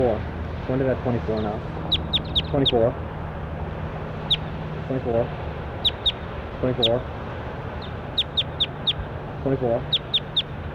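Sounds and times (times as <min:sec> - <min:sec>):
speech: 0:00.1 - 0:01.8, 0:02.5 - 0:03.1, 0:04.9 - 0:05.4, 0:06.6 - 0:07.2, 0:09.4 - 0:10.0
bird call: 0:01.4 - 0:02.9, 0:04.2 - 0:04.6, 0:05.7 - 0:07.0, 0:07.8 - 0:09.1, 0:09.8 - 0:10.6.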